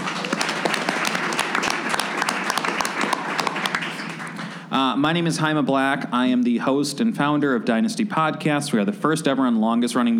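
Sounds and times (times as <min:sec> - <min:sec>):
audience applause: 0:00.0 - 0:04.9
speech: 0:04.8 - 0:10.1.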